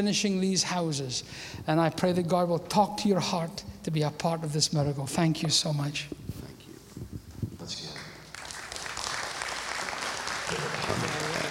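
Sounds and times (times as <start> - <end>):
speech: 0.0 - 6.2
audience hand clapping: 7.9 - 11.4
faint murmuring voices: 10.5 - 11.4.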